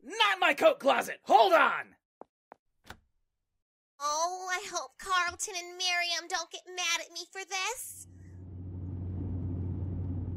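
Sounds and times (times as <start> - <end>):
speech: 0.5 - 2.0, 4.0 - 8.1
van driving fast engine and road rumble: 8.1 - 10.3.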